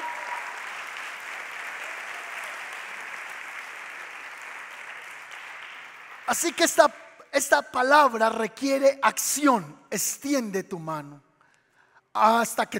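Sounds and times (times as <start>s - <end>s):
audience applause: 0.0s - 6.4s
speech: 6.3s - 11.3s, 12.2s - 12.7s.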